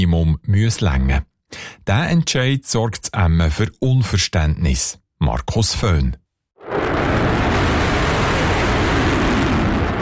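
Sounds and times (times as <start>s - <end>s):
speech: 0.1s - 7.3s
F-35 fighter jet taking off: 6.6s - 9.9s.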